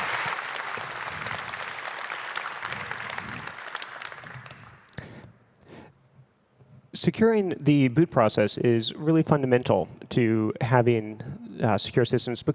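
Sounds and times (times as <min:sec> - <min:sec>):
audience applause: 0:00.0 - 0:05.0
speech: 0:07.0 - 0:12.5.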